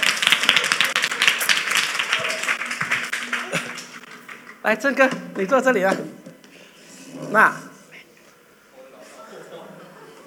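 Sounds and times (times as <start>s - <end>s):
crowd clapping hands: 0.0s - 4.7s
laughter: 3.4s - 4.0s, 9.0s - 10.2s
speech: 4.6s - 6.2s, 7.2s - 7.6s.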